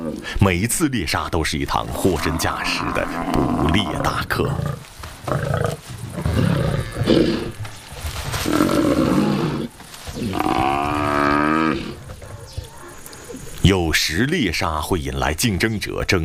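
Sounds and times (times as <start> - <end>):
lions roaring and growling: 0.0 - 0.3, 1.9 - 7.6, 8.4 - 13.5
speech: 0.1 - 5.8, 7.1 - 7.5, 14.1 - 16.2.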